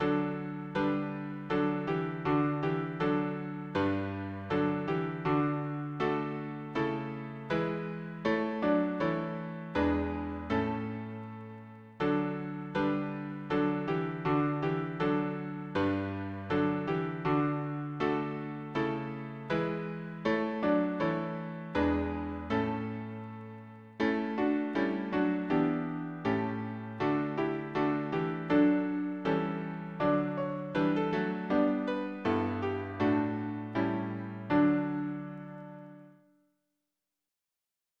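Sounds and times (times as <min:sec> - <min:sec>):
piano harmony: 0:00.0 - 0:36.2.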